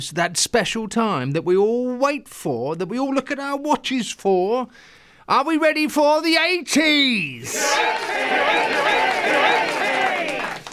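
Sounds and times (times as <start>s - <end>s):
speech: 0.0s - 9.6s
crowd cheering sound effect: 7.4s - 10.7s.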